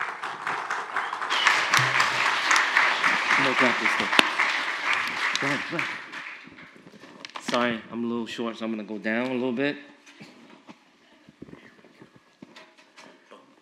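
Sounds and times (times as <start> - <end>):
church congregation applauding during a morning service: 0.0 - 7.0
speech: 3.4 - 4.3, 5.4 - 6.0, 7.5 - 9.9.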